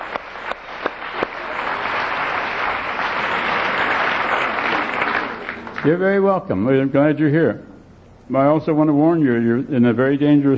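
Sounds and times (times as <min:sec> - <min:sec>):
audience applause for guests at a group gathering: 0:00.0 - 0:06.2
speech: 0:05.8 - 0:07.7, 0:08.3 - 0:10.5.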